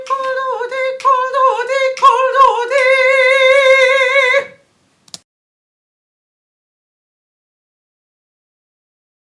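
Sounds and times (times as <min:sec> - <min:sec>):
soprano singing: 0:00.0 - 0:04.6.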